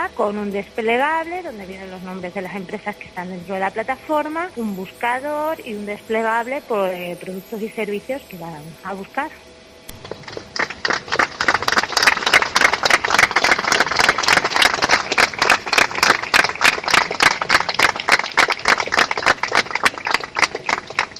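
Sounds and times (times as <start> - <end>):
speech: 0.1 - 9.5
applause at a public vigil in Cáceres: 9.9 - 21.1.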